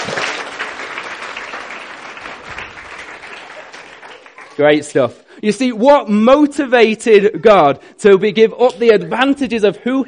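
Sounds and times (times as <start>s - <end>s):
audience applause: 0.0s - 4.7s
speech: 4.6s - 10.0s.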